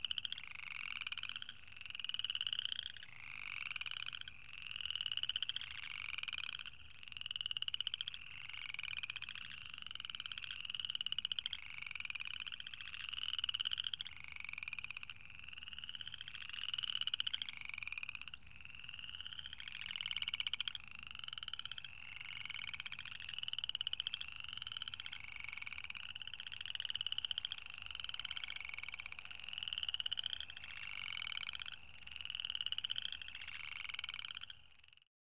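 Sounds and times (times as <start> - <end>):
small birds: 0.0 - 35.0
tree frogs: 0.0 - 35.1.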